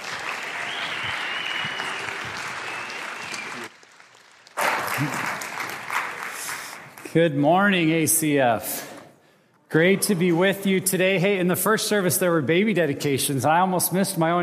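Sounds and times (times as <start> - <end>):
audience applause welcoming a speaker at a morning service: 0.0 - 7.1
speech: 5.0 - 5.2, 7.1 - 8.9, 9.7 - 14.4.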